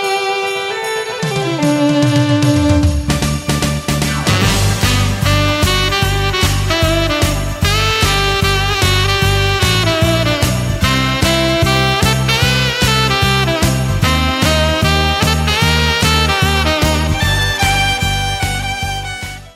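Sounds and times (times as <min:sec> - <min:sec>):
saxophone: 0:00.0 - 0:19.5
violin: 0:00.0 - 0:19.5.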